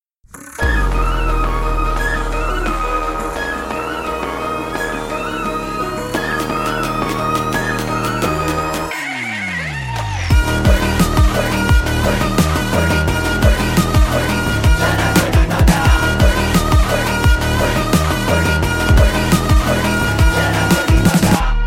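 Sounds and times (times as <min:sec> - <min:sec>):
background music ringtone: 0:00.3 - 0:21.5.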